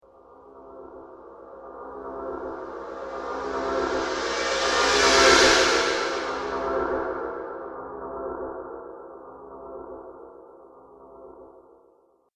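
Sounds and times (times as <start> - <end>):
dark scary soundscape: 0.1 - 11.8.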